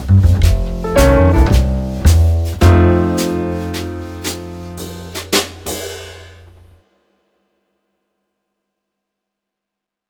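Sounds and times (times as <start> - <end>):
flute playing swing blues in F: 0.0 - 5.1.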